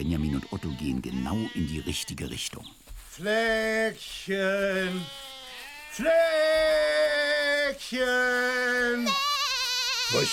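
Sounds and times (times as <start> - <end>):
sheep bleating in a flock: 0.0 - 2.4, 3.2 - 10.3
speech: 0.0 - 5.3, 6.0 - 9.3, 10.1 - 10.3.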